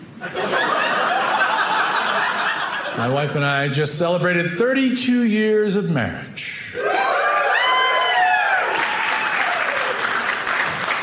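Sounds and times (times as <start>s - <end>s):
laughter: 0.2s - 3.2s
speech: 3.0s - 6.6s
audience applause: 6.9s - 11.0s.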